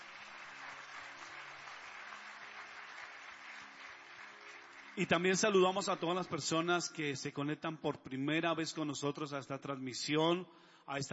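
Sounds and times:
audience applause: 0.0 - 6.3
speech: 5.0 - 11.1.

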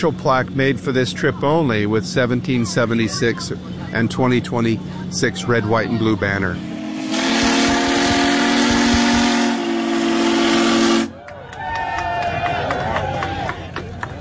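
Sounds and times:
speech: 0.0 - 6.7
steam locomotive whistle: 6.6 - 11.2
crowd cheering and whooping: 11.1 - 14.1.

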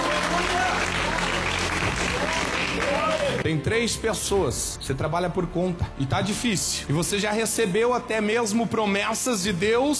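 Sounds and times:
audience applause: 0.0 - 3.4
speech: 3.4 - 9.9.

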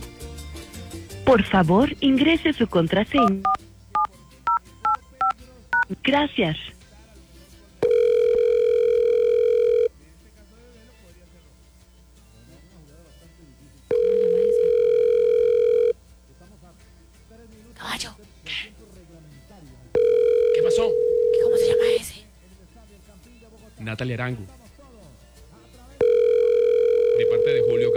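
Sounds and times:
speech: 1.3 - 3.6, 5.9 - 6.8
telephone ringback tones of an unanswered call: 2.0 - 6.6, 7.8 - 9.9, 13.9 - 16.0, 20.0 - 22.1, 26.0 - 27.9.

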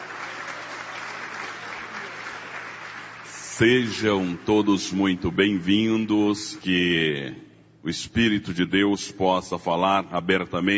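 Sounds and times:
audience clapping hands: 0.0 - 5.8
speech: 3.6 - 10.7.

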